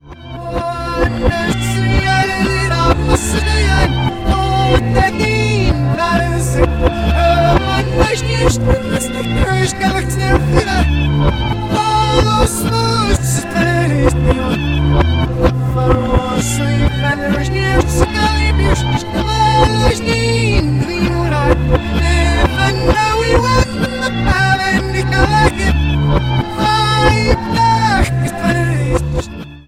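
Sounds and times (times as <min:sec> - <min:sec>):
reversed song: 0:00.0 - 0:29.4.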